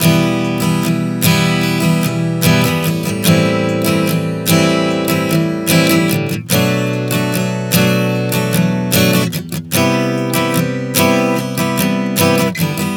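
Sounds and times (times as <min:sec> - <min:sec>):
acoustic guitar chord progression Em-Am-Bm-Cmaj7 at 74 bpm: 0:00.0 - 0:12.9.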